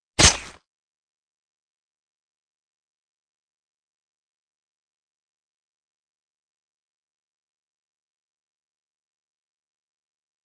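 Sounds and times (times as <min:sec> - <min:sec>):
fight sounds: 0:00.2 - 0:00.6.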